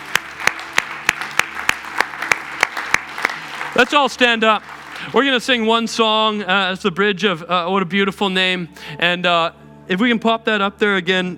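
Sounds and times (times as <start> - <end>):
audience clapping: 0.0 - 5.8
speech: 3.8 - 11.3.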